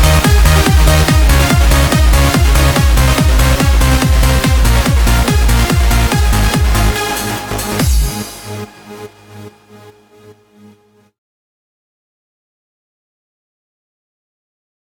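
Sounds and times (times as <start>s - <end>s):
hands-up techno music: 0.0s - 10.6s.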